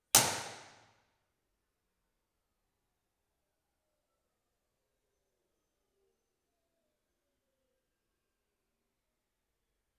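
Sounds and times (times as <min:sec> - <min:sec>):
room impulse responses of the Teatro Nacional: 0:00.2 - 0:00.9.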